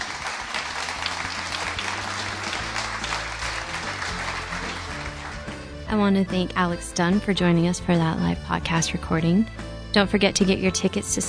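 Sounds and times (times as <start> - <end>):
audience round of applause: 0.0 - 5.7
speech: 5.9 - 11.2.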